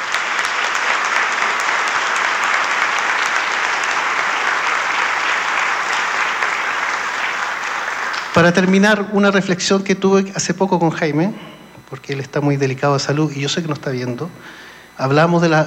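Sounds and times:
audience applause: 0:00.0 - 0:09.0
speech: 0:08.4 - 0:15.6.

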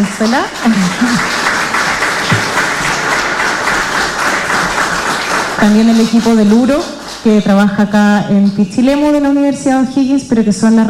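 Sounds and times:
speech: 0:00.0 - 0:01.4, 0:05.6 - 0:10.8
audience applause: 0:00.0 - 0:07.4.

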